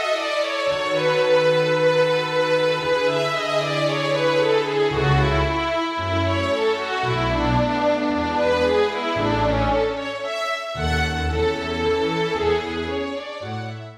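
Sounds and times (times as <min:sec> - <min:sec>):
melody: 0:00.2 - 0:13.7.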